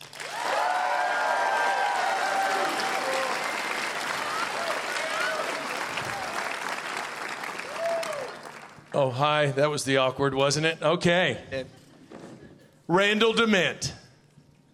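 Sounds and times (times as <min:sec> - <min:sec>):
large audience applause: 0:00.0 - 0:08.9
voices cheering: 0:00.2 - 0:06.8, 0:07.5 - 0:08.6
speech: 0:09.0 - 0:11.8, 0:12.9 - 0:14.0.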